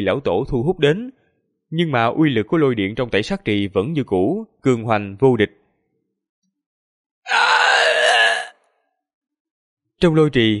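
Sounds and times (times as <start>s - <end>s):
speech: 0.0s - 5.6s, 10.0s - 10.5s
agonized howling scream: 7.3s - 8.6s.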